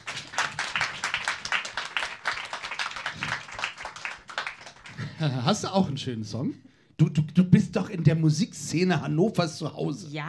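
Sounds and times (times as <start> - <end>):
applause, many hands clapping: 0.0 - 5.6
speech: 5.2 - 10.2.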